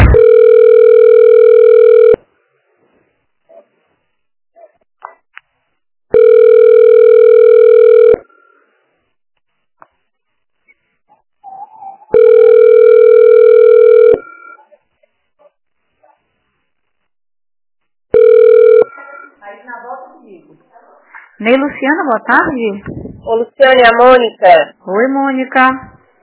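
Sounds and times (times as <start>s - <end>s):
telephone ringback tone on a call to a busy office extension: 0.1s - 2.2s, 6.1s - 8.3s, 12.1s - 14.5s, 18.1s - 18.9s
speech: 22.1s - 25.9s.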